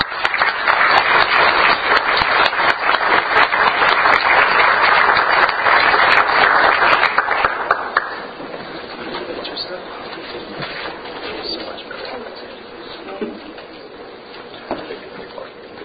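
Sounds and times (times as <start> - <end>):
audience applause: 0.0 - 8.4.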